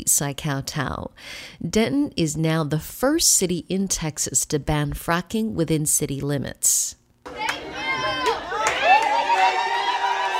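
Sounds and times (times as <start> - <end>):
speech: 0.0 - 7.0
crowd cheering: 7.2 - 10.3.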